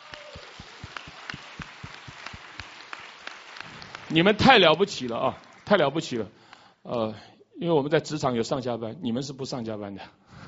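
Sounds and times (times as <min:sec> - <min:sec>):
audience applause: 0:00.0 - 0:06.1
speech: 0:04.1 - 0:10.4.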